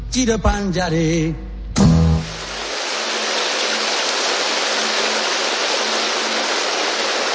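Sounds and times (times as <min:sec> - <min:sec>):
speech: 0:00.2 - 0:01.5
steady rain falling at a recording studio: 0:02.2 - 0:07.3.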